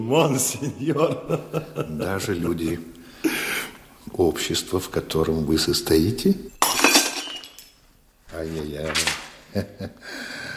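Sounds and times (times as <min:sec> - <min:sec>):
speech: 0:00.0 - 0:03.4, 0:04.1 - 0:06.8, 0:08.4 - 0:10.4
laughter: 0:00.2 - 0:03.7, 0:09.5 - 0:10.0
expensive crystal wine glass shattering after being dropped: 0:06.5 - 0:07.9.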